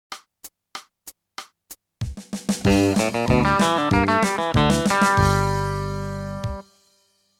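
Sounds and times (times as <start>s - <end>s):
country music: 2.6s - 6.7s.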